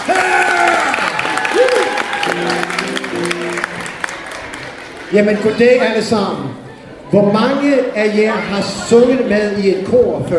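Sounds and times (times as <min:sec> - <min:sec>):
audience applauding to welcome a performer at a choir event: 0:00.0 - 0:05.8
speech: 0:05.1 - 0:10.3.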